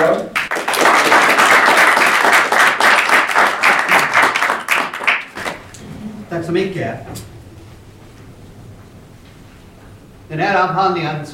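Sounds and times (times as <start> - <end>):
audience applause: 0.3 - 5.8
speech: 6.5 - 7.3, 10.3 - 11.3.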